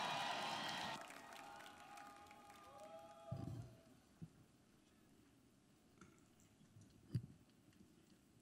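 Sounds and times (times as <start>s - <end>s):
audience clapping to welcome a gospel choir at a church service: 0.0s - 3.3s.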